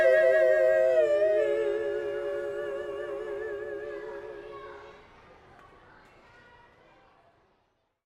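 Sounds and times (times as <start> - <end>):
carolers singing a Christmas song: 0.0 - 5.0.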